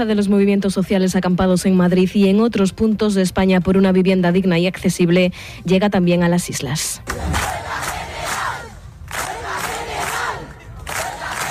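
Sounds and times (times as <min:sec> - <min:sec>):
speech: 0:00.0 - 0:07.6
crowd shouting and chanting at a housing-rights assembly in Las Palmas de Gran Canaria: 0:07.1 - 0:11.4.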